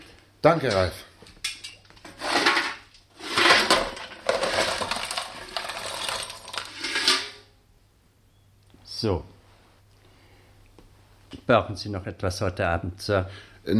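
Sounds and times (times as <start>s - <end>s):
speech: 0.4s - 1.1s, 9.0s - 9.3s, 11.5s - 13.7s
lumps of coal shovelled into a fireplace: 0.6s - 7.5s.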